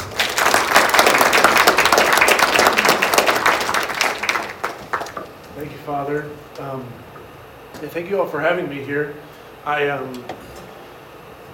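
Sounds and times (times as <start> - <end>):
audience applause greeting a speaker: 0.0 - 5.5
speech: 5.9 - 7.1, 7.7 - 10.4.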